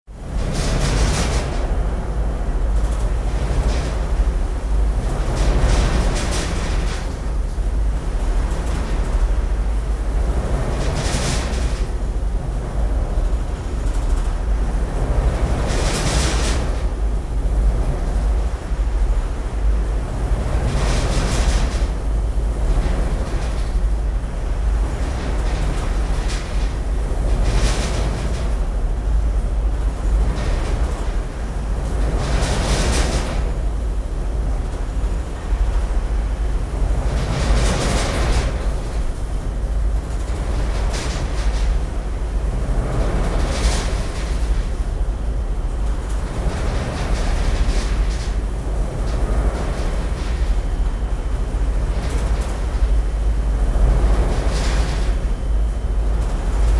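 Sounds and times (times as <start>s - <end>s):
oil pipeline service vessel control room ambience: 0.1s - 56.7s.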